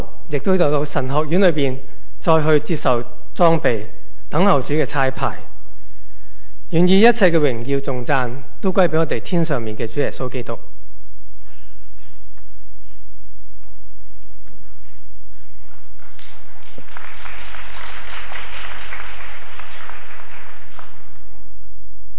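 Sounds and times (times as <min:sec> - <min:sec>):
speech: 0:00.3 - 0:05.5, 0:06.7 - 0:10.7
audience applause: 0:15.6 - 0:21.4.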